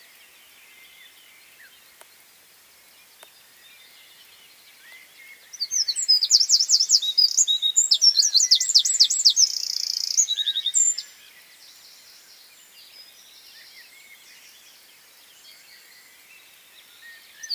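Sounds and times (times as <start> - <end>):
Eurasian wren Troglodytes troglodytes singing: 4.8 - 11.2, 16.9 - 17.5.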